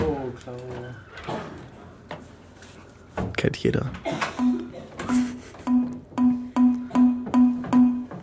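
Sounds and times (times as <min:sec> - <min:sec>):
speech: 0:00.4 - 0:01.3, 0:03.4 - 0:04.5
Windows Forms error ding: 0:04.4 - 0:08.2.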